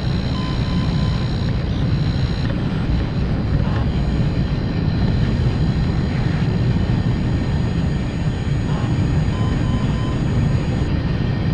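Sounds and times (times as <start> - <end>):
electronic beeps: 0.0 - 2.5, 8.7 - 10.9
high whines: 0.0 - 11.5
household appliance rumble: 0.0 - 11.5.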